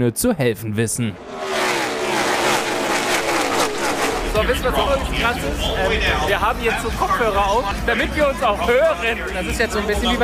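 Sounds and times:
speech: 0.0s - 2.0s, 4.4s - 10.2s
V8 race car engines with 5.9 litre displacement roaring: 1.2s - 8.0s.

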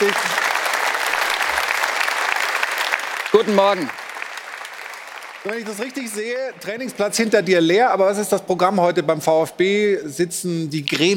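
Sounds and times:
studio applause: 0.0s - 7.4s
speech: 3.4s - 4.0s, 5.4s - 11.1s.

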